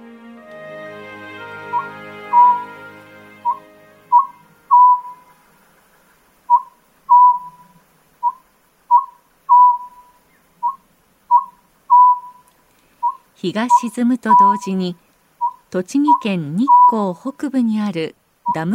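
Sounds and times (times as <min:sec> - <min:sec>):
Oriental scops owl hooting: 0:01.5 - 0:14.8
speech: 0:13.4 - 0:15.0, 0:15.7 - 0:18.7.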